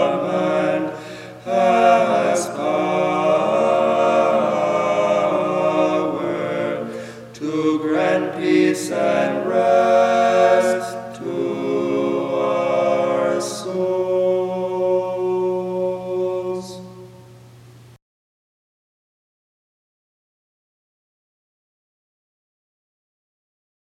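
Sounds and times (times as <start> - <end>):
choir chanting stichera: 0.0 - 17.2.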